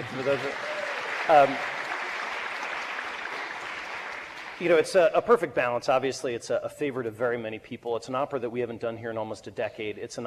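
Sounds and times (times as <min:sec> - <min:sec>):
speech: 0:00.0 - 0:00.7, 0:01.3 - 0:01.8, 0:04.6 - 0:10.2
audience applause: 0:00.0 - 0:05.0.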